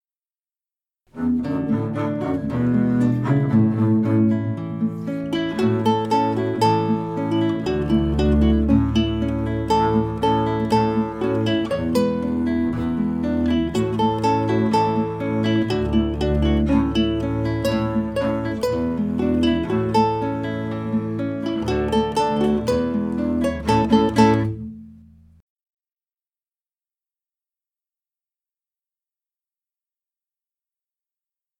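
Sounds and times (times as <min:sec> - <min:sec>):
instrumental music without vocals: 0:01.1 - 0:25.4.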